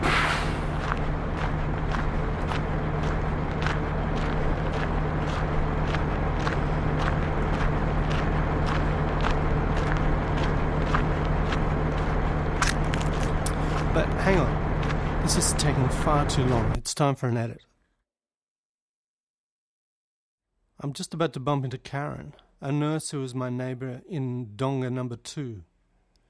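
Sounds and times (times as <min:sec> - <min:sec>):
massive road trains on the highway: 0:00.0 - 0:16.8
speech: 0:16.1 - 0:17.7, 0:20.8 - 0:25.7.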